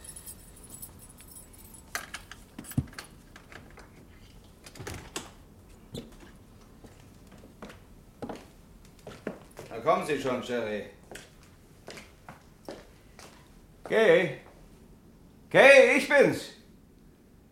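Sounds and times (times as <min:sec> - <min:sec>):
keys jangling: 0:00.0 - 0:03.2
low hum: 0:00.0 - 0:17.4
speech: 0:09.8 - 0:11.0, 0:13.9 - 0:14.4, 0:15.5 - 0:16.5.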